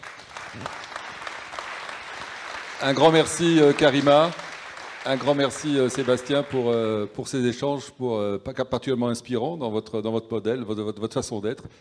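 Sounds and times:
audience applause: 0:00.0 - 0:07.2
speech: 0:00.6 - 0:00.8, 0:02.8 - 0:04.4, 0:05.0 - 0:11.8.

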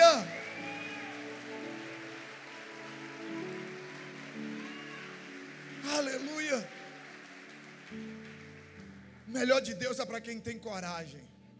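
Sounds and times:
raised voices cheering: 0:00.0 - 0:08.1
crowd applause: 0:00.0 - 0:10.0
speech: 0:06.1 - 0:06.7, 0:09.4 - 0:11.3.

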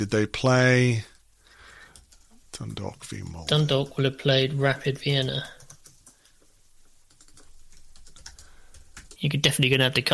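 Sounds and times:
speech: 0:00.0 - 0:01.1, 0:02.6 - 0:05.6, 0:09.2 - 0:10.1
computer keyboard typing as people search Google: 0:01.9 - 0:02.4, 0:05.1 - 0:06.4, 0:07.0 - 0:09.4.

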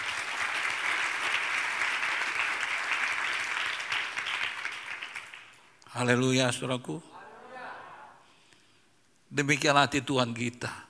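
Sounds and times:
audience applause: 0:00.0 - 0:05.6
speech: 0:06.0 - 0:07.1, 0:09.4 - 0:10.8.

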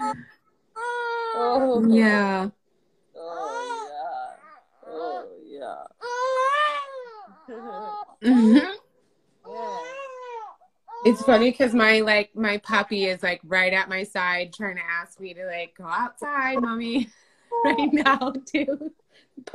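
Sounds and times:
baby fussing and crying: 0:00.8 - 0:01.8, 0:03.2 - 0:08.7, 0:09.5 - 0:11.7
speech: 0:01.4 - 0:02.6, 0:11.0 - 0:19.5.

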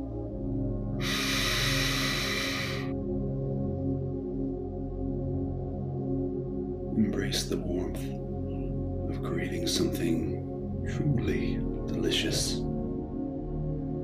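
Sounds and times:
quiet low drone: 0:00.0 - 0:14.0
deep breath in during guided relaxation: 0:01.0 - 0:03.0
speech: 0:07.2 - 0:08.2, 0:09.2 - 0:12.7.

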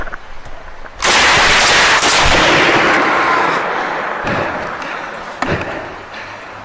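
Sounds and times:
gunshots: 0:01.0 - 0:05.7.

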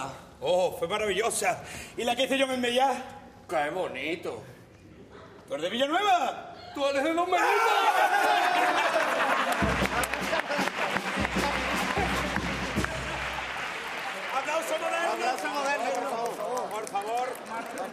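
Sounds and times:
speech: 0:00.4 - 0:04.6, 0:05.5 - 0:09.0
laughter: 0:07.5 - 0:12.4
crowd applauding: 0:08.1 - 0:17.9.

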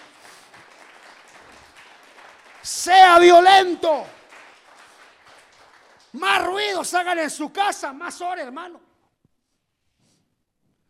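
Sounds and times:
audience applause: 0:00.0 - 0:06.6
speech: 0:02.6 - 0:04.2, 0:06.2 - 0:08.9.

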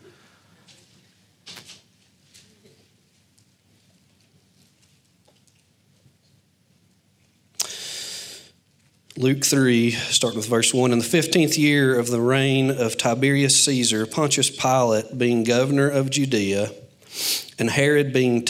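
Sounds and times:
Bible pages turning: 0:01.4 - 0:02.6
speech: 0:09.2 - 0:18.4.

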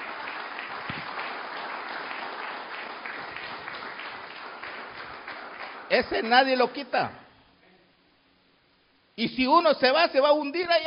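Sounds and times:
audience applause: 0:00.0 - 0:06.4
speech: 0:05.9 - 0:07.2, 0:09.2 - 0:10.8.

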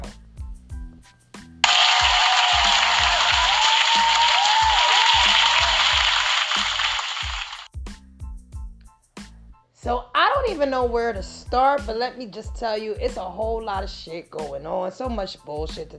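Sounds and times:
applause: 0:01.6 - 0:07.7
speech: 0:10.6 - 0:15.9.

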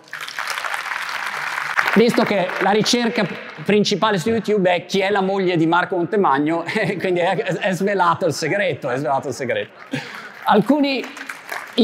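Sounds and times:
crowd applause: 0:00.0 - 0:04.0, 0:09.3 - 0:11.8
speech: 0:02.0 - 0:11.2
laughter: 0:09.7 - 0:10.6.

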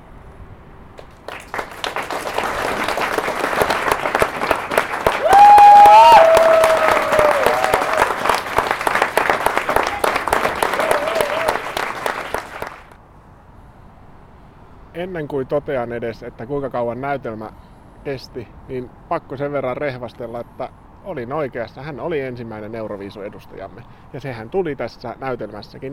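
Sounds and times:
theatre audience applause after the play: 0:01.0 - 0:13.0
speech: 0:15.0 - 0:25.9.

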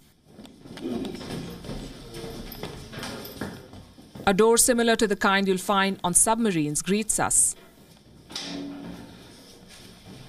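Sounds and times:
footsteps walking down stairs: 0:00.0 - 0:04.7, 0:07.6 - 0:10.2
speech: 0:04.3 - 0:07.6.

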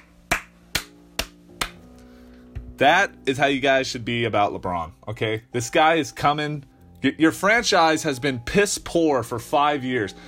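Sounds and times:
hands clapping: 0:00.0 - 0:01.8
speech: 0:02.8 - 0:10.2.

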